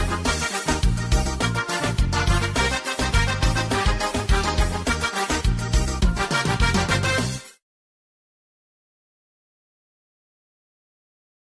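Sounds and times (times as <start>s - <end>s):
forrozão music: 0.0s - 7.6s.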